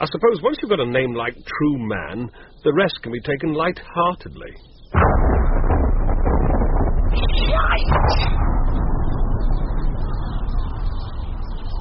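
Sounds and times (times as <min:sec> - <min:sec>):
speech: 0:00.0 - 0:05.3, 0:07.2 - 0:08.5
atomic bomb explosion: 0:04.9 - 0:11.7.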